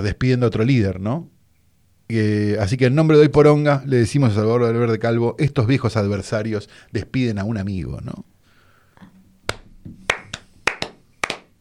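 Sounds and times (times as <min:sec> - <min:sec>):
speech: 0:00.0 - 0:01.3, 0:02.1 - 0:08.3
scattered hand claps: 0:09.5 - 0:11.5.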